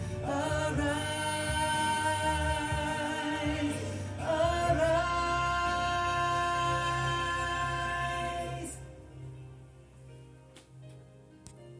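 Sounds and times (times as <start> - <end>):
tenor singing interlude: 0.0 - 9.0.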